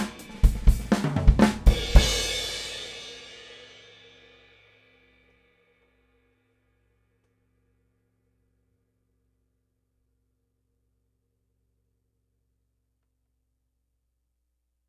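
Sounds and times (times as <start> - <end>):
Sabian Proto AA cymbal: 0.0 - 5.1.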